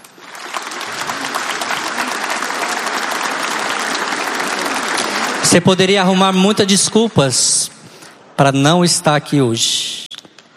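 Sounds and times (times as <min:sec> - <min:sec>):
large crowd applauding: 0:00.0 - 0:06.4
speech: 0:05.5 - 0:07.8, 0:08.4 - 0:10.0.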